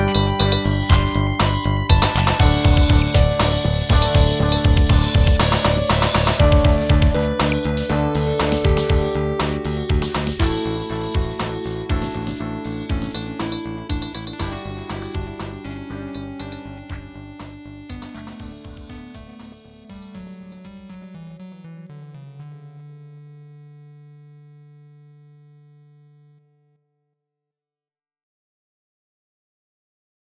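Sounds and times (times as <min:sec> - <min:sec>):
improvised silly drums: 0:00.0 - 0:19.6.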